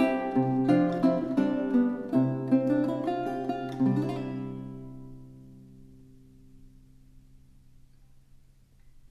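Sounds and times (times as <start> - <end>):
galliard dance piece on lute: 0.0 - 5.8.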